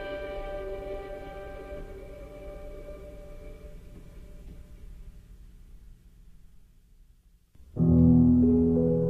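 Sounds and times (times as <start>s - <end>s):
piano: 0.0s - 4.8s, 7.6s - 9.0s.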